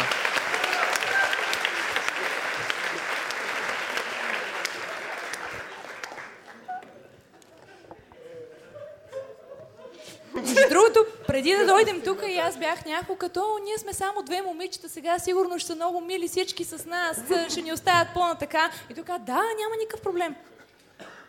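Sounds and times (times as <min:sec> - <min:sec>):
audience applause: 0:00.0 - 0:07.1
laughter: 0:05.6 - 0:12.8
speech: 0:11.4 - 0:20.5.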